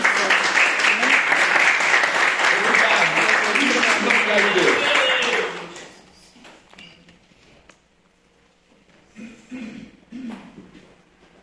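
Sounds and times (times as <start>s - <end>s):
audience clapping: 0.0s - 6.1s.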